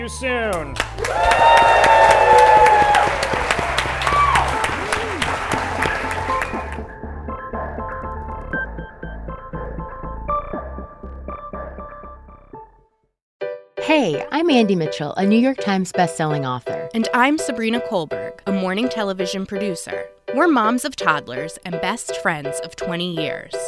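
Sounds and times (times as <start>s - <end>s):
speech: 0.0s - 2.1s, 13.9s - 23.6s
audience applause: 0.5s - 7.0s.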